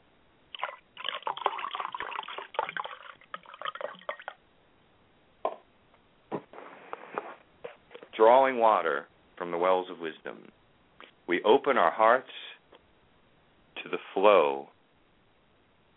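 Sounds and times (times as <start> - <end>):
ale being poured: 0.5 - 4.4
soft liquid splashes and drips: 0.5 - 4.4
speech: 8.2 - 10.6, 11.3 - 12.4, 14.2 - 14.7.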